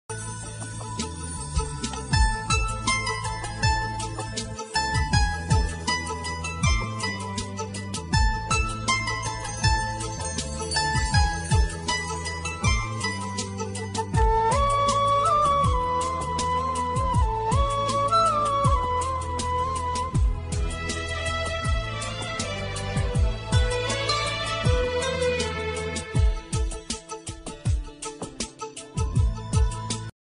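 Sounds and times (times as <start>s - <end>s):
movie background music: 0.1s - 30.1s.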